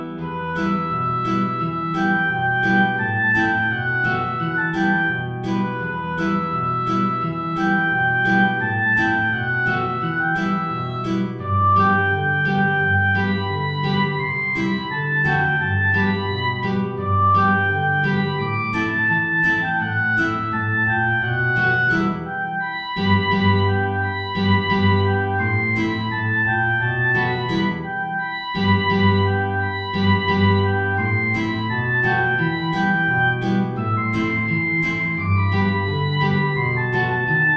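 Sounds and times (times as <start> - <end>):
high guitar: 0.0 - 37.5
high oboe: 0.0 - 37.5.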